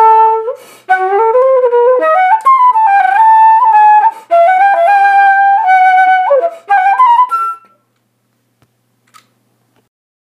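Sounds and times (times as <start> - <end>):
musette style music: 0.0 - 7.8.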